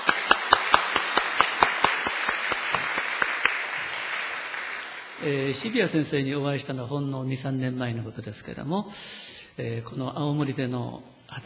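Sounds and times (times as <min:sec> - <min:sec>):
audience applauding: 0:00.0 - 0:06.2
speech: 0:05.2 - 0:11.4.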